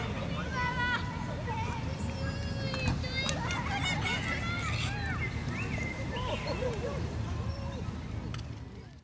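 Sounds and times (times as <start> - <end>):
people talking at a beach resort: 0.0 - 8.9
people laughing at a beach resort: 3.4 - 4.7, 6.0 - 7.2
birds at a beach resort: 4.7 - 8.9.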